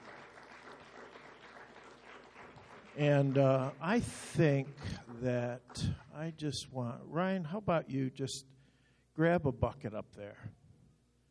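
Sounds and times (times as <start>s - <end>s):
audience clapping hands: 0.0s - 6.4s
speech: 3.0s - 8.6s, 9.2s - 10.6s.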